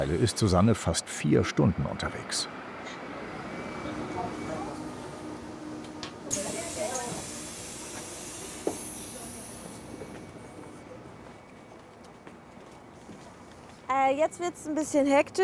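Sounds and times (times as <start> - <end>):
speech: 0.0 - 2.6, 14.2 - 15.4
vehicle and station rumble at a bus station: 0.0 - 15.4
pneumatic hiss: 6.3 - 10.6.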